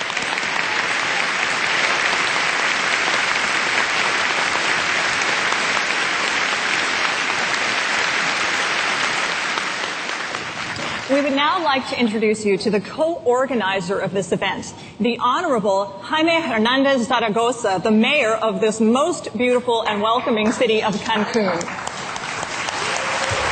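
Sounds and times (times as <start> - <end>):
crowd applauding: 0.0 - 11.4, 20.6 - 23.5
speech: 11.3 - 21.8.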